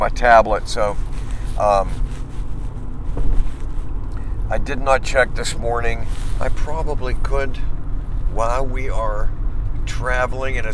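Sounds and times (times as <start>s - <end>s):
speech: 0.0s - 2.0s, 4.5s - 10.7s
road noise inside a moving car: 0.0s - 10.7s.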